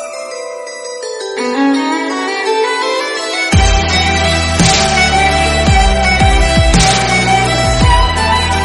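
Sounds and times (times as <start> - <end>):
quest melody: 0.0 - 8.6.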